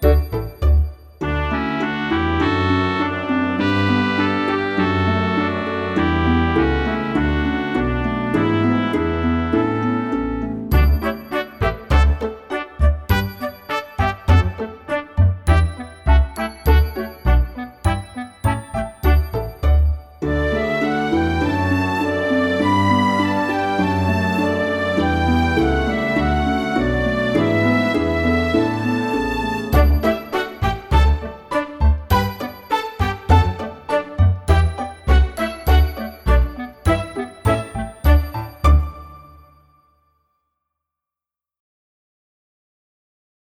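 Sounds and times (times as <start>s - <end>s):
legato and staccato playing exercise: 0.0s - 39.6s.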